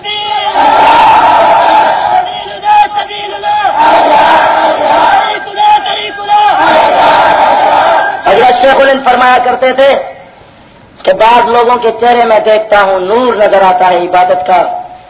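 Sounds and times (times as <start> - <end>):
crowd chanting slogans: 0.2 - 8.4
speech: 9.2 - 10.1, 11.1 - 14.8.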